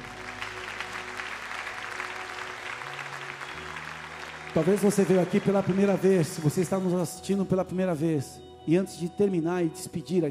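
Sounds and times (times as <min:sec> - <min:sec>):
audience applauding: 0:00.0 - 0:07.1
speech: 0:04.6 - 0:10.3.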